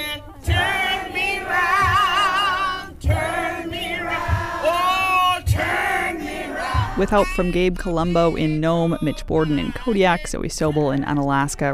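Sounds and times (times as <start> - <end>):
crowd cheering at a women's march: 0.0 - 7.1
speech: 7.0 - 11.7.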